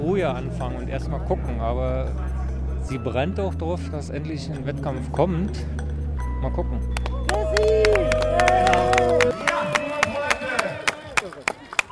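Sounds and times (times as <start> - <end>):
speech: 0.1 - 5.8, 6.4 - 6.9
spectators applauding and cheering: 7.0 - 11.9.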